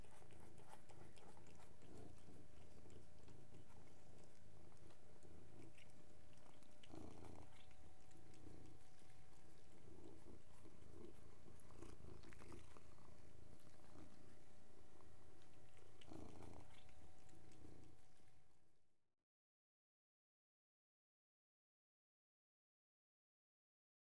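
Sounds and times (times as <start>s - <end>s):
three domestic cats purring together: 0.0s - 18.8s.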